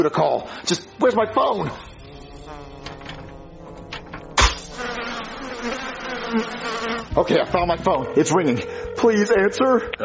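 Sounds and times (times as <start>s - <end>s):
speech: 0.0s - 1.9s, 6.3s - 10.0s
swarm of flies buzzing: 1.7s - 10.0s
sharp thump: 4.3s - 5.2s.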